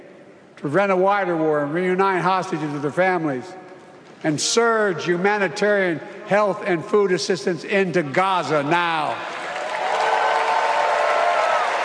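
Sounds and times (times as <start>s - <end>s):
speech: 0.6s - 3.6s, 4.2s - 9.3s
applause: 9.0s - 11.8s.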